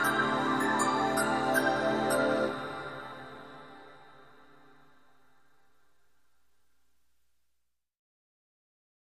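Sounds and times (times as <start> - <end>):
underscore music: 0.0 - 4.7.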